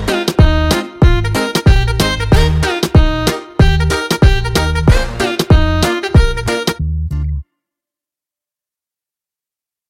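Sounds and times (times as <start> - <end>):
sped-up instrumental remix beat: 0.0 - 7.4.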